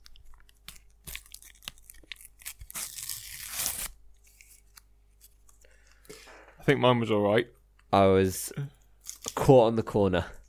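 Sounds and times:
sticker pack being torn open: 0.0s - 4.8s
speech: 6.7s - 8.8s, 9.5s - 10.4s.

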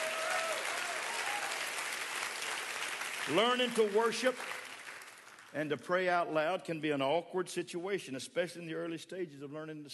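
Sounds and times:
faint voices and cheers: 0.0s - 1.6s
audience clapping: 0.0s - 5.6s
speech: 3.2s - 4.6s, 5.5s - 9.9s.

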